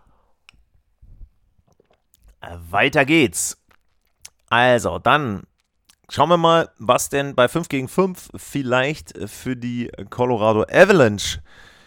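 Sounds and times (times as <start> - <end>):
man sipping and swallowing a drink: 0.4 - 2.6, 3.5 - 4.6, 5.4 - 6.1
speech: 2.4 - 3.6, 4.5 - 5.5, 6.1 - 11.7.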